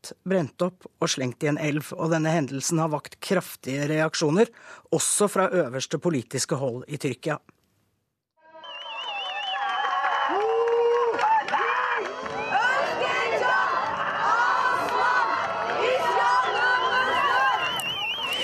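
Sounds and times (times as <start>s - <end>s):
speech: 0.0s - 7.6s
high wavering whistle-like tones: 8.4s - 10.1s, 16.4s - 18.4s
protest crowd shouting and chanting slogans: 11.4s - 18.4s.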